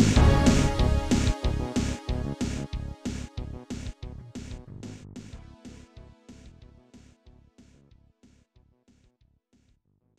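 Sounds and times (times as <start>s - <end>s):
pause menu music: 0.2s - 3.7s.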